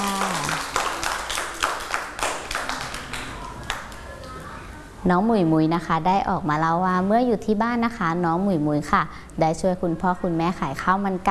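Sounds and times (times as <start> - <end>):
children clapping: 0.0 - 4.4
speech: 5.0 - 11.3.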